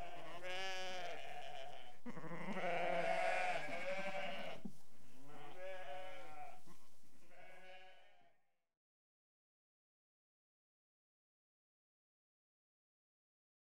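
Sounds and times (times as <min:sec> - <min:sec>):
restless sheep bleating: 0:00.0 - 0:08.4.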